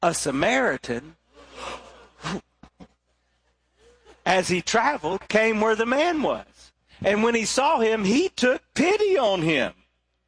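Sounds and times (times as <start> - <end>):
speech: 0.0 - 2.5, 4.2 - 9.8
audience gasping together on cue: 1.3 - 2.5.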